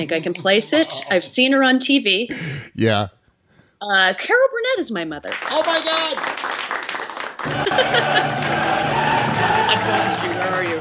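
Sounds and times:
laughter: 0.0 - 1.2, 7.4 - 10.8
speech: 0.0 - 3.2, 3.8 - 6.6, 7.4 - 10.8
clapping: 5.3 - 10.8
crowd cheering wildly: 7.4 - 10.8
scattered shouts: 7.5 - 10.8.

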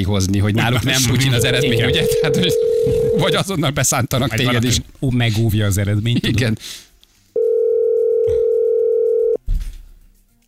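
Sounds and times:
speech: 0.0 - 6.9
telephone ringback tone, call unanswered: 1.4 - 3.4, 7.4 - 9.4.

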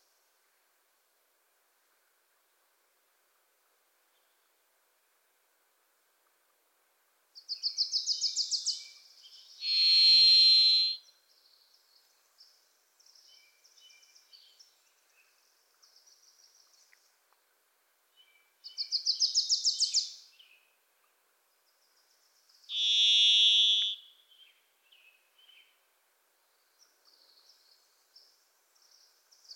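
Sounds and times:
bird chipping: 9.6 - 11.0, 22.7 - 24.0.

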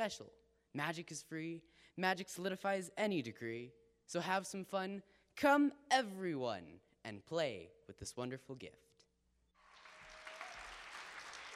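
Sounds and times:
speech: 0.0 - 8.9
audience applause after poem: 9.6 - 11.5.

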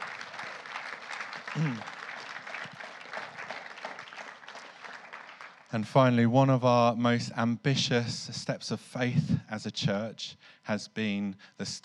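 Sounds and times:
audience applause: 0.0 - 5.8
speech: 1.6 - 1.9, 5.7 - 11.8.

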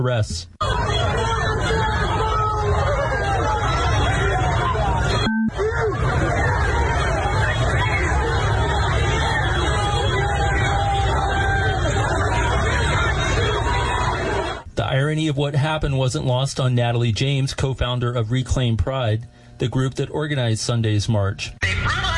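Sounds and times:
speech: 0.0 - 1.8, 15.0 - 22.0
protest crowd shouting: 0.6 - 14.6.

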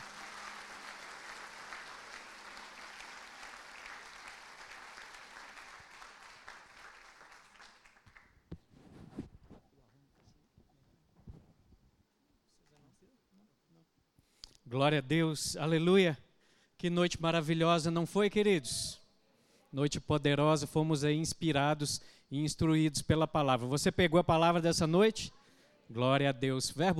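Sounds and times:
audience applause: 0.0 - 8.4
speech: 14.7 - 16.2, 16.8 - 19.0, 19.7 - 26.9.

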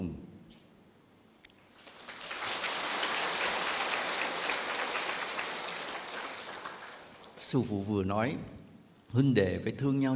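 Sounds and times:
people clapping: 1.6 - 7.5
speech: 7.5 - 10.1.

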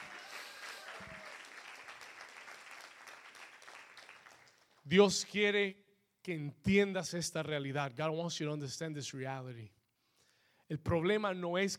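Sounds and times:
audience applause: 0.0 - 4.8
speech: 4.9 - 9.8, 10.7 - 11.7.

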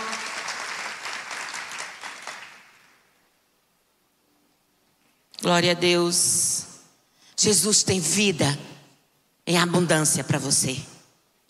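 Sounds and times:
audience applause: 0.0 - 3.0
speech: 5.4 - 6.7, 7.4 - 8.8, 9.5 - 11.0.

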